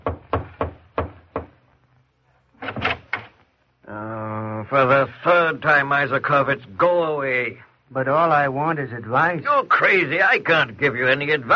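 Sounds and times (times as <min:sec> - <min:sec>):
timid knocking on a door: 0:00.0 - 0:01.5
speech: 0:04.7 - 0:11.5.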